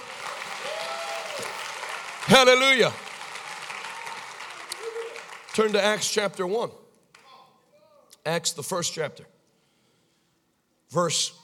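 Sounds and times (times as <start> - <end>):
congregation applauding during a church service: 0.0 - 7.2
speech: 2.3 - 3.0, 5.6 - 6.8, 8.2 - 9.3, 10.9 - 11.4.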